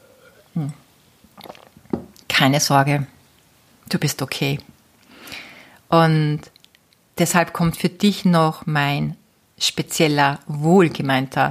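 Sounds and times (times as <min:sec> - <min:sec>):
speech: 0:00.6 - 0:00.8, 0:02.4 - 0:03.2, 0:03.9 - 0:04.7, 0:05.9 - 0:06.5, 0:07.2 - 0:11.4
mouth and swallowing noises: 0:01.4 - 0:02.2
person gulping a drink: 0:01.4 - 0:02.2.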